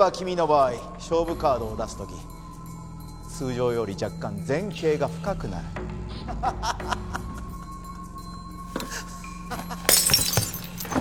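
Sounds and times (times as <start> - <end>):
speech: 0.0 - 2.4, 3.3 - 7.2
man laughing: 6.1 - 7.6, 8.9 - 10.2
glass cup smashing: 9.7 - 10.9.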